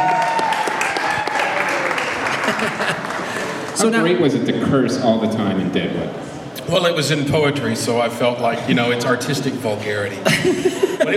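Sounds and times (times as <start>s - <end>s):
audience applause: 0.0s - 3.9s
laughter: 2.2s - 3.8s, 10.1s - 11.1s
speech: 3.8s - 11.1s.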